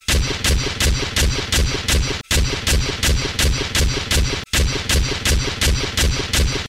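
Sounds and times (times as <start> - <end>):
sentry gun shooting: 0.0 - 6.6.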